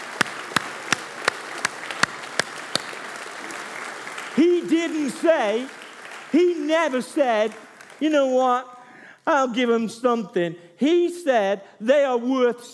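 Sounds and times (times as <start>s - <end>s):
audience clapping in rhythm: 0.0s - 9.8s
speech: 4.4s - 12.7s.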